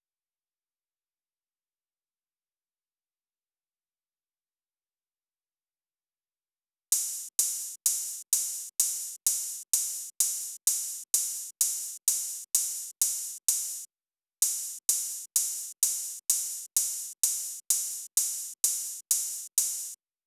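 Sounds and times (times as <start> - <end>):
open hi-hat: 6.9 - 20.0.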